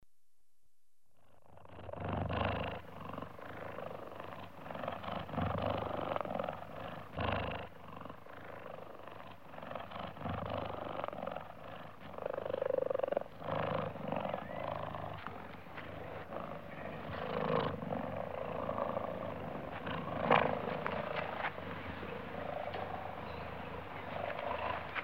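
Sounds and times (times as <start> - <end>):
cheetahs growling in Africa: 1.4 - 25.0.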